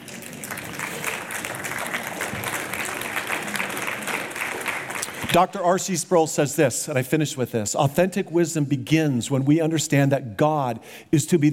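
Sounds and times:
audience applause: 0.0s - 5.4s
speech: 5.3s - 11.5s.

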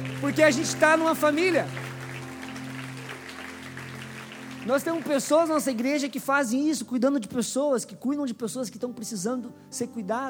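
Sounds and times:
audience applause: 0.0s - 6.1s
speech: 0.2s - 1.8s, 4.6s - 10.2s.

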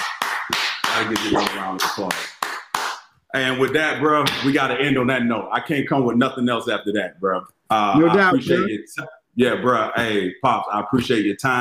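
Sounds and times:
applause: 0.0s - 3.0s
speech: 1.0s - 2.4s, 3.3s - 11.6s.

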